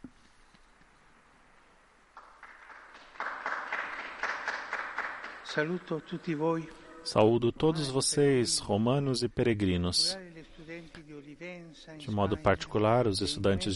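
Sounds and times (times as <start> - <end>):
crowd applause: 2.2 - 7.1
speech: 5.6 - 10.2, 10.8 - 13.7.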